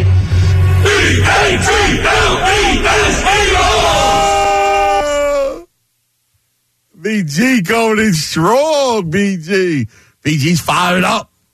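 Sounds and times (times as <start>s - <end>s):
crowd chanting and yelling: 0.0s - 5.7s
speech: 7.2s - 11.3s.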